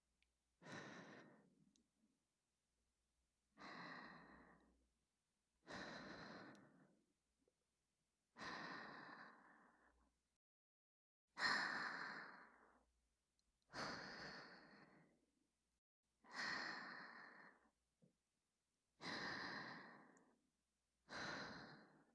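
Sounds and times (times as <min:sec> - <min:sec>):
whispered breathing: 0:00.6 - 0:01.8, 0:03.6 - 0:04.8, 0:05.6 - 0:07.0, 0:08.3 - 0:10.2, 0:11.4 - 0:12.9, 0:13.7 - 0:15.2, 0:16.2 - 0:17.8, 0:19.0 - 0:20.4, 0:21.0 - 0:22.1.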